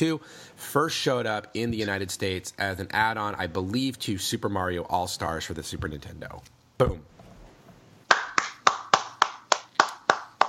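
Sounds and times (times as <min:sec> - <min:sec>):
speech: 0:00.0 - 0:07.1
hand clapping: 0:08.1 - 0:10.4.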